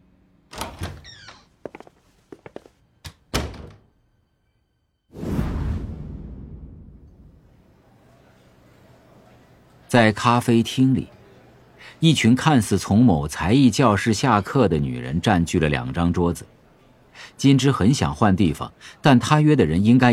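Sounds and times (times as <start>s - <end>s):
door being worked open with clicks and thunks: 0.5s - 1.4s, 3.1s - 3.9s
door swinging shut with a loud whooshing thud: 0.5s - 1.4s, 3.3s - 3.9s
speech: 9.9s - 11.2s, 11.9s - 16.6s, 17.2s - 20.1s.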